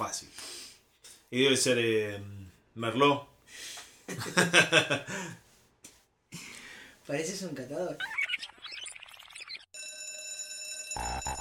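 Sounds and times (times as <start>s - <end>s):
speech: 1.3s - 5.4s, 7.1s - 8.2s
electric bell ringing for recess: 9.7s - 11.3s.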